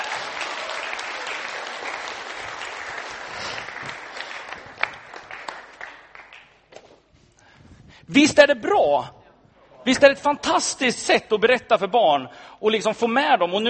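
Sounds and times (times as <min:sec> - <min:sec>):
audience applause: 0:00.0 - 0:06.5
speech: 0:08.1 - 0:09.2, 0:09.8 - 0:13.6.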